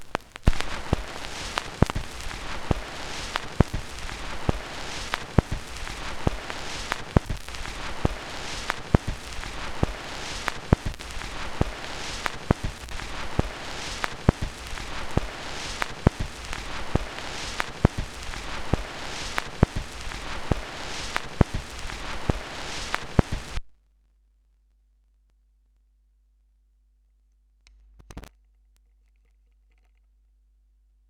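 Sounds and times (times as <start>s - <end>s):
vinyl record noise: 0.0s - 23.8s, 27.9s - 28.3s.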